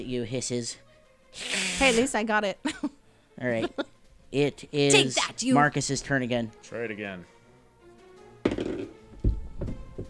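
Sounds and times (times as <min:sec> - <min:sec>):
speech: 0:00.0 - 0:07.4
die dropped on a tabletop: 0:08.4 - 0:09.0.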